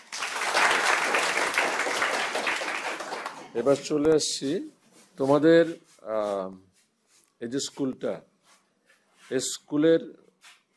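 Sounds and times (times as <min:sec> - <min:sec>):
audience applause at a school event: 0:00.0 - 0:03.6
speech: 0:03.6 - 0:06.7, 0:07.4 - 0:08.3, 0:09.3 - 0:10.2.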